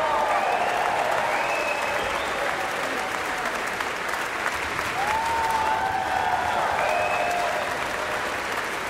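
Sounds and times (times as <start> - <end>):
concert audience applauding an orchestra after a symphony: 0.0 - 8.8
audience whistles and shouts: 0.2 - 2.6, 6.4 - 7.8.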